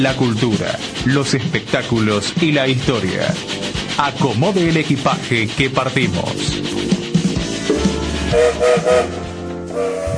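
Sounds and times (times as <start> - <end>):
speech: 0.0 - 6.9, 8.3 - 9.2, 9.8 - 10.1
train whistle blowing: 8.2 - 10.1.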